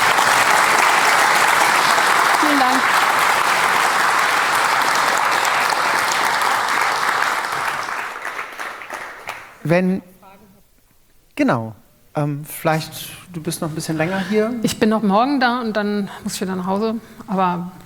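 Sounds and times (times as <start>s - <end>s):
audience applause: 0.0s - 9.6s
speech: 9.7s - 10.1s, 11.4s - 17.8s.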